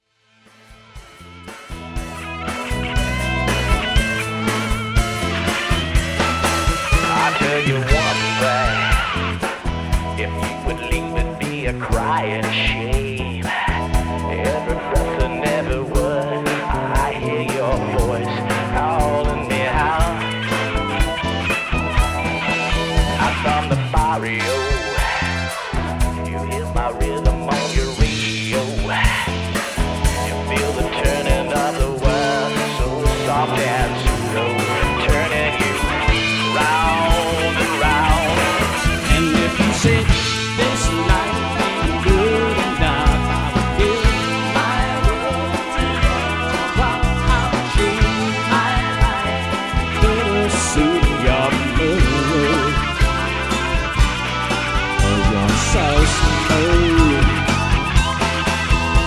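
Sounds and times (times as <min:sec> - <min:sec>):
cover band playing: 0:00.5 - 0:59.0.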